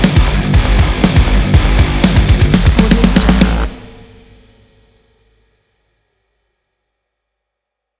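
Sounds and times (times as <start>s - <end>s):
dark industrial metal music: 0.0s - 5.0s.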